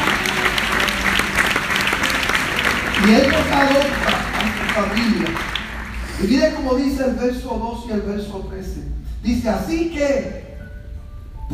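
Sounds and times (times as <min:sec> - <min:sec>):
applause in praise to God: 0:00.0 - 0:06.6
speech: 0:03.0 - 0:05.6, 0:06.2 - 0:10.4.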